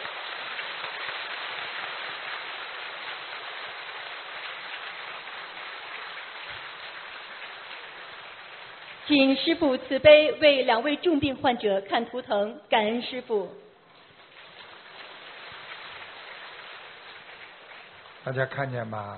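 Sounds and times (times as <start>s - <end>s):
crowd applauding: 0.0s - 9.9s, 14.0s - 19.0s
speech: 9.1s - 13.6s, 18.3s - 19.1s.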